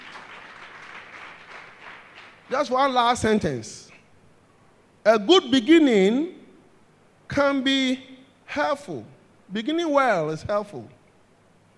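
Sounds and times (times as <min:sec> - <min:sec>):
audience clapping hands: 0:00.0 - 0:02.9
speech: 0:02.5 - 0:03.8, 0:05.0 - 0:06.4, 0:07.4 - 0:11.0.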